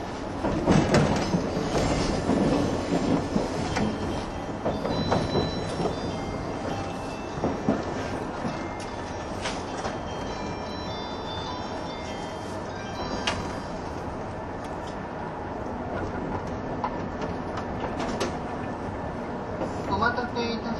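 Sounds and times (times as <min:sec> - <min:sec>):
185 series Odoriko 106 train rumbling and rattling: 0:00.0 - 0:20.7.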